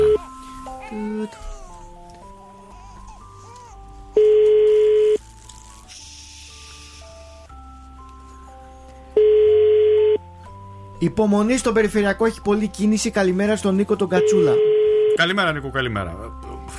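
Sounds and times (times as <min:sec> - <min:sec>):
soft music: 0:00.0 - 0:16.7
phone line ringing unanswered: 0:04.2 - 0:05.2, 0:09.2 - 0:10.2, 0:14.2 - 0:15.2
speech: 0:11.0 - 0:16.4.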